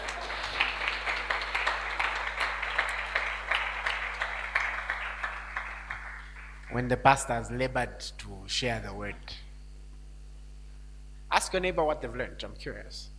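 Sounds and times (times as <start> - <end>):
audience clapping: 0.0 - 7.0
speech: 6.8 - 9.4, 11.4 - 13.1.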